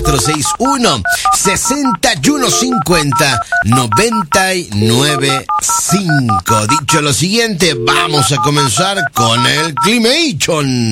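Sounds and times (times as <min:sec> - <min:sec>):
telephone keypad dialing tones placing a call to a phone booth: 0:00.0 - 0:07.0, 0:07.7 - 0:10.0
speech: 0:00.1 - 0:10.9.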